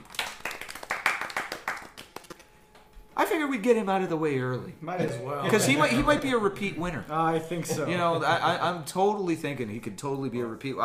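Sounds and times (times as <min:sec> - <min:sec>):
golf clap: 0:00.0 - 0:02.5
speech: 0:03.2 - 0:10.8.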